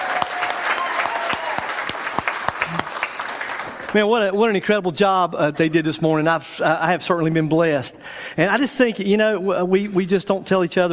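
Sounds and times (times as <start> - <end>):
crowd applauding: 0.0 - 4.2
speech: 3.9 - 10.9.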